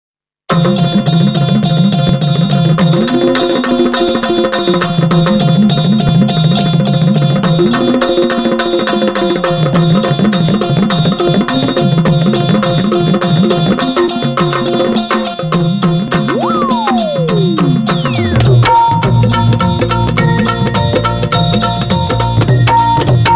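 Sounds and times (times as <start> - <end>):
Marathi dholki drum: 0.5 - 23.3.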